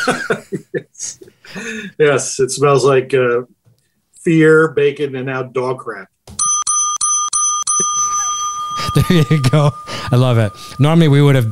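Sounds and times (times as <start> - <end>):
laughter: 0.0 - 1.3, 8.9 - 9.8
speech: 0.0 - 3.6, 4.2 - 6.1, 9.0 - 11.5
bell sound effect: 6.4 - 11.5.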